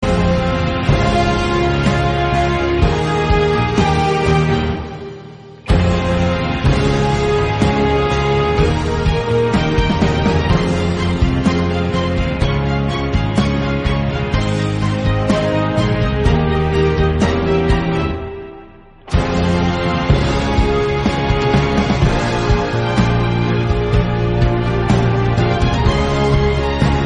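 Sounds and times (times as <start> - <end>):
instrumental background music: 0.0 - 27.0.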